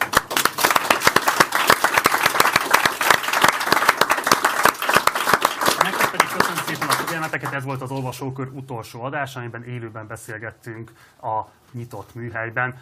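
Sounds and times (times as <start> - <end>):
audience applause: 0.0 - 7.8
speech: 7.2 - 12.7.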